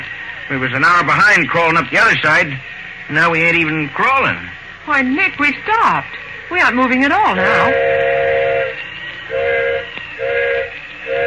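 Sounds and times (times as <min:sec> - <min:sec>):
steam hissing: 0:00.0 - 0:11.2
speech: 0:00.5 - 0:07.9
steam train whistle signaling for flagman: 0:06.6 - 0:11.2.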